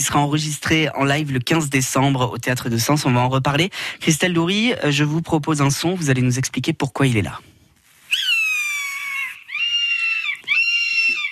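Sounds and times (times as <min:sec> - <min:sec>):
speech: 0:00.0 - 0:07.5
golden eagle calls: 0:08.0 - 0:11.3.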